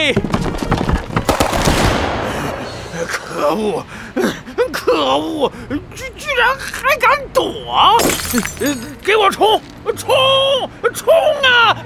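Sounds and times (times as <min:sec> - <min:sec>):
speech: 0:00.0 - 0:00.4, 0:03.1 - 0:11.8
pirates shooting guns sound effect in an audio drama: 0:01.3 - 0:03.4.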